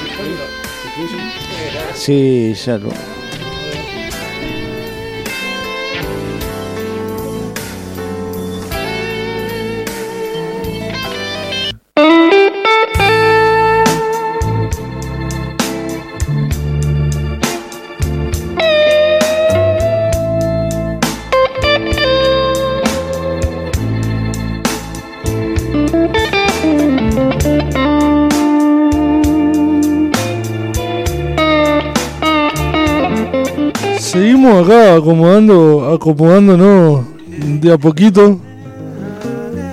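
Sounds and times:
instrumental music with percussive beat and gritty effects-laden guitar-like tone: 0:00.0 - 0:02.2, 0:02.8 - 0:34.1
speech: 0:00.2 - 0:03.2, 0:35.0 - 0:38.5.

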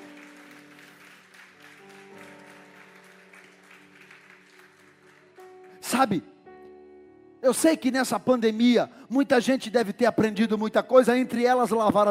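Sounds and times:
audience applause: 0:00.0 - 0:05.8
speech: 0:05.9 - 0:06.3, 0:07.5 - 0:12.0.

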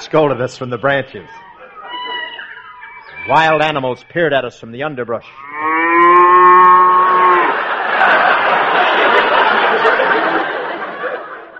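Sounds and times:
speech: 0:00.1 - 0:01.4, 0:03.2 - 0:06.1
laughter: 0:01.4 - 0:02.8, 0:07.1 - 0:11.5
Holstein cow mooing: 0:05.3 - 0:07.7.

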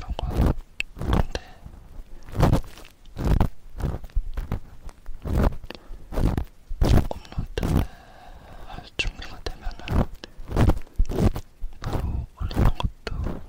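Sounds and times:
soft whispering: 0:00.0 - 0:02.6, 0:06.8 - 0:10.9, 0:11.7 - 0:13.4
sticky ear pick and cotton swab ear cleaning: 0:00.0 - 0:13.4.

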